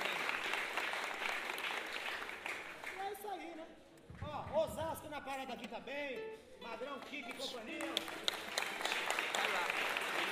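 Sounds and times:
audience applause for a friend: 0.0s - 3.2s, 7.4s - 10.2s
speech: 4.8s - 10.2s.

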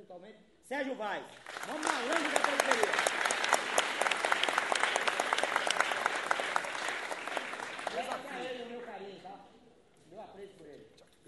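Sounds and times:
speech: 0.1s - 3.8s, 8.4s - 11.0s
crowd applauding: 1.3s - 9.2s.

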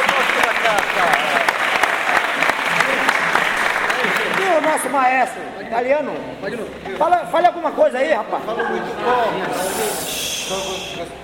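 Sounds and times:
audience applause at a community music gathering: 0.0s - 5.1s
speech: 4.6s - 11.2s.

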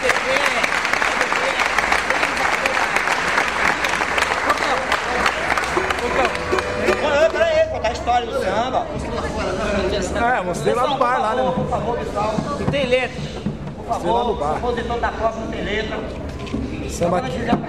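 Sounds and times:
audience applause: 0.0s - 7.6s
crowd chatter: 0.0s - 17.6s
speech: 10.4s - 16.2s, 16.9s - 17.6s.

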